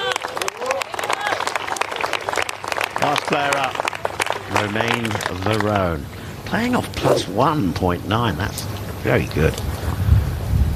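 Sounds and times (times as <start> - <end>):
onlookers clapping for a golfer on the tee at a Beat the Pro Challenge golf event: 0.0 - 6.0
speech: 3.3 - 3.9, 4.5 - 9.7.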